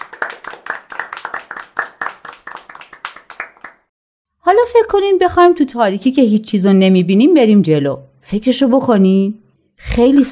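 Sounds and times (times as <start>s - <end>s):
group clapping for themselves: 0.0s - 3.9s
speech: 4.5s - 10.3s.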